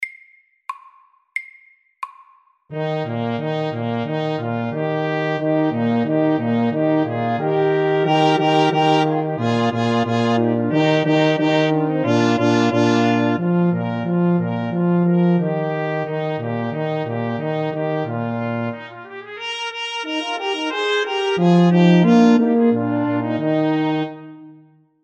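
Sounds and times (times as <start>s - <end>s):
fanfare: 2.7s - 15.6s, 16.4s - 24.7s.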